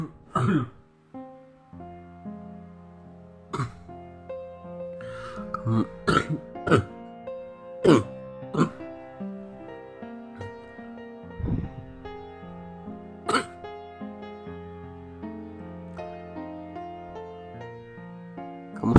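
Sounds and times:
coughing: 0.0 - 0.8, 3.5 - 3.9, 5.6 - 7.0, 7.8 - 8.8, 13.3 - 13.6
throat clearing: 0.0 - 0.8, 3.5 - 3.9, 5.6 - 7.0, 7.8 - 8.8, 13.3 - 13.6.

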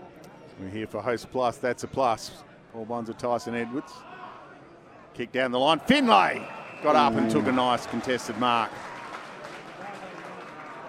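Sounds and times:
speech: 0.6 - 4.2, 5.2 - 8.9
polite applause from North stadium fans: 6.8 - 10.8.

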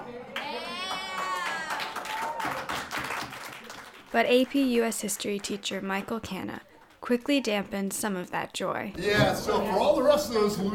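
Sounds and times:
students clapping and cheering: 0.2 - 5.6
speech: 4.1 - 10.7.

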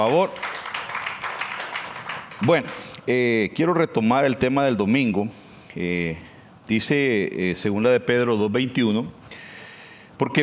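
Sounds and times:
speech: 0.0 - 0.5, 2.4 - 9.2, 10.2 - 10.4
audience applause: 0.0 - 2.9.

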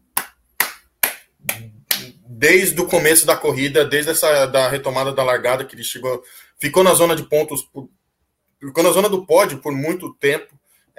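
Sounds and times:
hand clapping: 0.0 - 2.2
speech: 1.6 - 8.0, 8.6 - 10.9.

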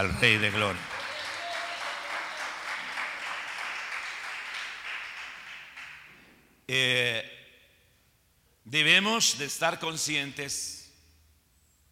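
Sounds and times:
speech: 0.0 - 0.9, 6.7 - 7.4, 8.7 - 10.8
audience applause: 0.0 - 6.1.

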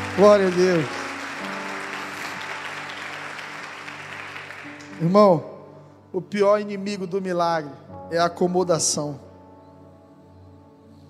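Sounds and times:
audience applauding: 0.0 - 5.2
speech: 0.2 - 1.0, 5.0 - 5.5, 6.1 - 9.2.

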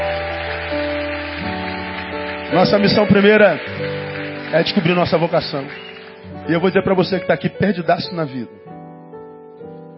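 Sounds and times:
audience applause: 0.0 - 6.8
speech: 2.5 - 8.6.

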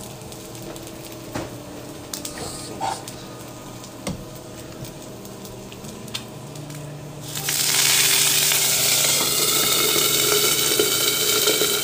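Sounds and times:
fried egg and vegetables sizzling in a pan: 0.0 - 11.8.

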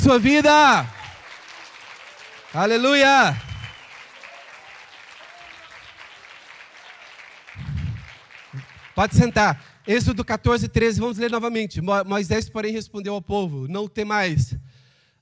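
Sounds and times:
speech: 0.0 - 1.0, 2.5 - 3.5, 9.0 - 14.7
audience clapping: 0.0 - 10.5.

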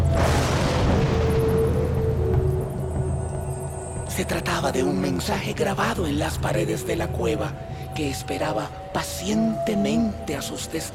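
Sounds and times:
thunder from a lightning strike during rain: 0.0 - 7.6
speech: 4.2 - 10.9.

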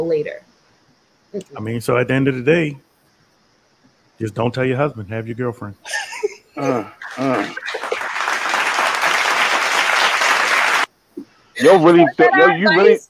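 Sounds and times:
speech: 0.0 - 0.5, 1.3 - 2.9, 4.2 - 6.0, 6.6 - 7.8, 11.6 - 13.0
laughter: 5.9 - 10.8, 11.6 - 12.8
audience applause: 7.0 - 10.9.

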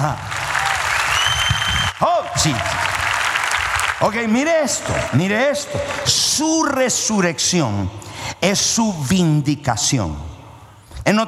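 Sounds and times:
speech: 0.0 - 0.3, 2.0 - 2.9, 4.0 - 10.3, 11.1 - 11.2
audience applauding: 0.0 - 6.8.

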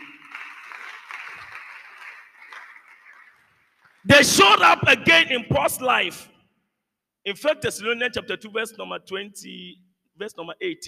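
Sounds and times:
audience clapping: 0.0 - 4.1
speech: 4.0 - 6.3, 7.2 - 10.8.

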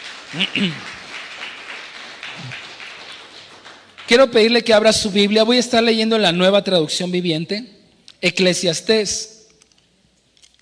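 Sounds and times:
audience applause: 0.0 - 5.0
speech: 0.3 - 0.9, 4.1 - 9.3.

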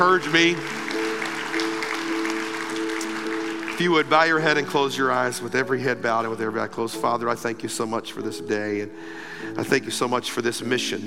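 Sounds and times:
speech: 0.0 - 0.8, 3.8 - 11.0
audience clapping: 0.0 - 5.5.

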